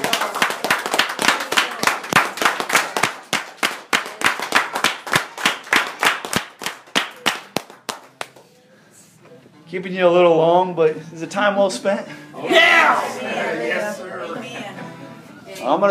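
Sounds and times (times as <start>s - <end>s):
audience hand clapping: 0.0s - 8.5s
speech: 9.7s - 13.7s, 15.6s - 15.9s.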